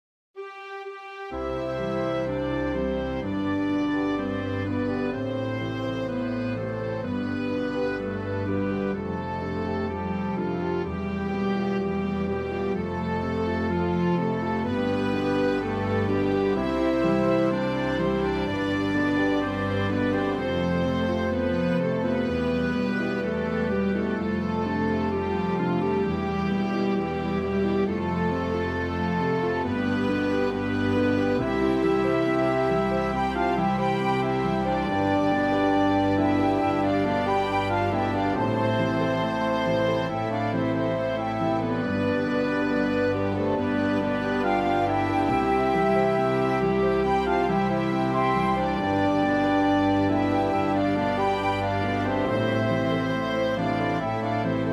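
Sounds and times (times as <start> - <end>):
orchestral song: 0.4 - 54.7.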